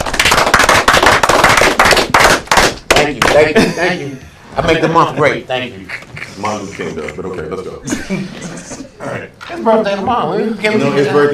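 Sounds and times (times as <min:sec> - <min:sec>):
clapping: 0:00.0 - 0:03.5
laughter: 0:03.4 - 0:09.3
speech: 0:03.4 - 0:11.3.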